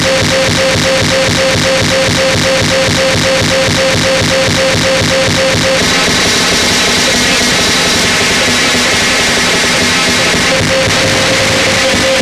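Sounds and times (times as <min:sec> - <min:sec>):
drone loop: 0:00.0 - 0:12.2
noise: 0:00.0 - 0:12.2.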